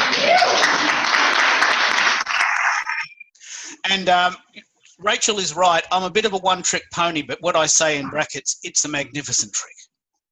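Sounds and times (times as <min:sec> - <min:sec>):
audience applause: 0:00.0 - 0:03.2
speech: 0:03.9 - 0:09.9.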